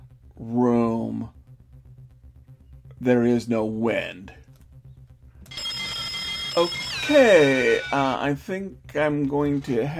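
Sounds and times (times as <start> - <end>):
speech: 0.4 - 0.7, 3.0 - 4.4, 6.6 - 9.9
bell ringing: 5.5 - 8.1.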